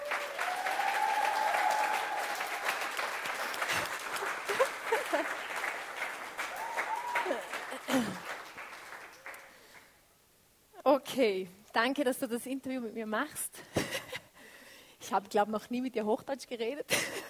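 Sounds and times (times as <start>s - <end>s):
people cheering and whooping: 0.0s - 5.6s, 6.4s - 7.8s
audience applause: 0.0s - 9.9s
laughter: 3.5s - 5.8s
speech: 11.0s - 13.6s, 15.1s - 17.2s.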